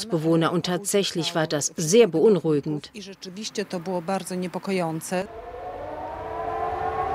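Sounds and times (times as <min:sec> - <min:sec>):
speech: 0:00.0 - 0:05.5
civil defense air raid siren wailing: 0:05.2 - 0:07.1.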